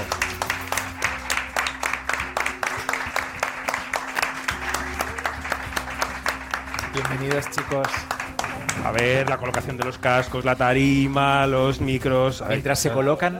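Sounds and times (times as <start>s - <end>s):
live audience applause: 0.0s - 10.4s
speech: 7.0s - 8.2s, 8.8s - 13.3s.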